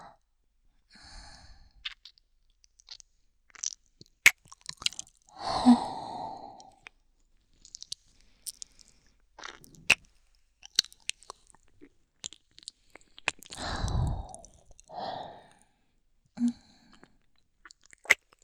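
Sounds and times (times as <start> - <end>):
ASMR ear licking by a woman: 1.8 - 6.0, 6.6 - 15.1, 16.9 - 18.4.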